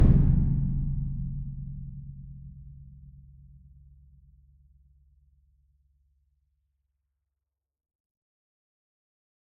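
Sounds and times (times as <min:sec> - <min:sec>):
concert bass drum roll: 0:00.0 - 0:02.1.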